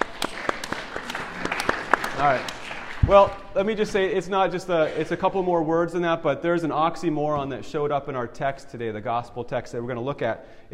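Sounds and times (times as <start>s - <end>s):
audience applause: 0.0s - 3.5s
speech: 2.2s - 10.7s.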